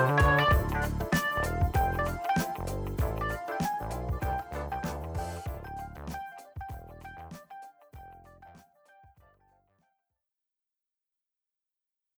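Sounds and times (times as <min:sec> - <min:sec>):
remix music: 0:00.0 - 0:07.5.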